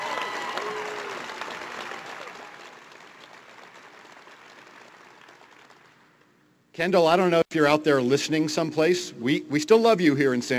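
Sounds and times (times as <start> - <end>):
audience applause: 0.0 - 6.1
speech: 6.8 - 10.5.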